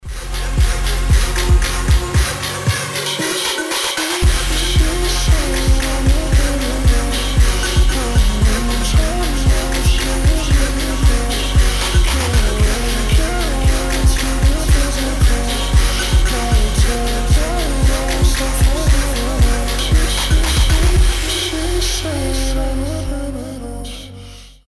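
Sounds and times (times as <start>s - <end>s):
slowed reverb music: 0.0s - 24.4s.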